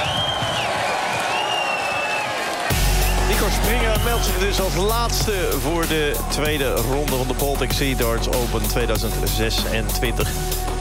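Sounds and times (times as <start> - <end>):
audience applause: 0.0 - 5.8
audience cheering: 0.0 - 7.5
speech: 3.5 - 10.7.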